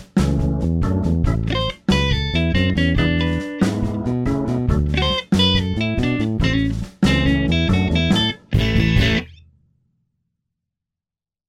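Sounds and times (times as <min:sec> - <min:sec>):
blues rumba guitar: 0:01.2 - 0:09.3.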